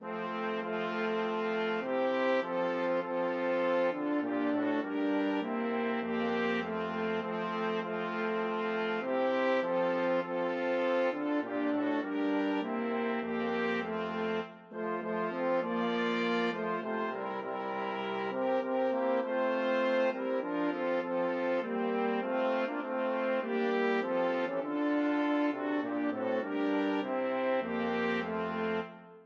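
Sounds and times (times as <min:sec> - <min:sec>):
Christmas brass quartet: 0:00.0 - 0:29.2.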